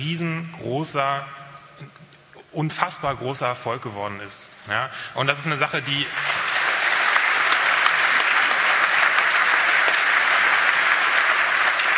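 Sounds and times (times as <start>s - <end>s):
speech: 0.0s - 2.0s, 2.6s - 6.4s
audience applauding: 5.8s - 11.9s.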